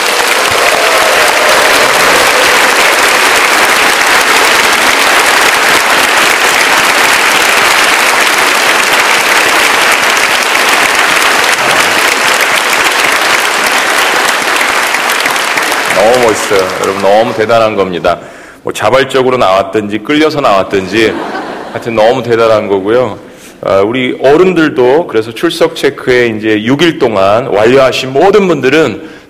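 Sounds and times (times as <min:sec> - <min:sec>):
audience applauding warmly: 0:00.0 - 0:17.9
speech: 0:16.5 - 0:29.2
laughter: 0:20.7 - 0:22.0.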